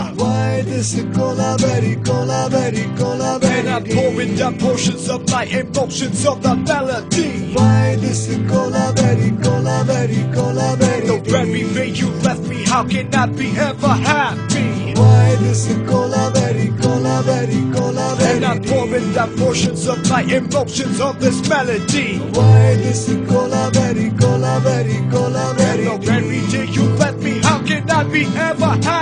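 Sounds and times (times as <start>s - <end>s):
rap music: 0.0s - 29.0s.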